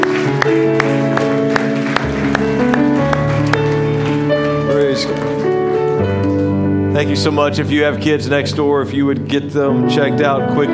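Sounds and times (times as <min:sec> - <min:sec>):
audience clapping along in rhythm: 0:00.0 - 0:06.6
sustained keyboard or organ chords: 0:00.0 - 0:10.7
speech: 0:07.0 - 0:10.7.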